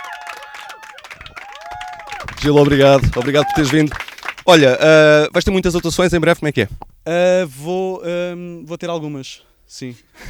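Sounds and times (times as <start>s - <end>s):
audience applause: 0.0s - 4.7s
crowd cheering: 0.0s - 4.8s
speech: 2.4s - 10.2s.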